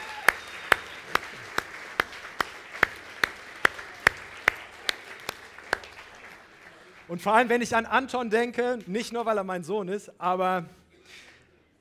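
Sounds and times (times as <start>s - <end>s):
audience applause: 0.0s - 7.1s
speech: 7.1s - 11.2s.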